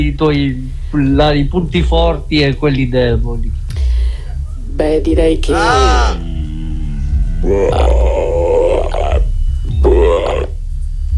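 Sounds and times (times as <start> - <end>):
speech: 0.1 - 3.9, 4.8 - 6.3, 7.4 - 8.4
loud deep burping: 5.7 - 10.6.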